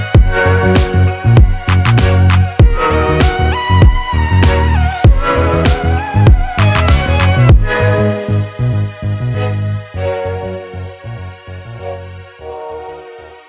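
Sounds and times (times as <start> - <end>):
retro music beat at 98 bpm: 0.0 - 9.4.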